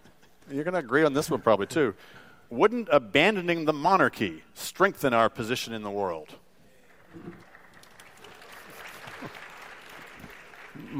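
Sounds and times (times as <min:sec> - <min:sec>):
speech: 0:00.5 - 0:06.4, 0:07.1 - 0:07.5, 0:10.8 - 0:10.9
applause: 0:06.8 - 0:10.9.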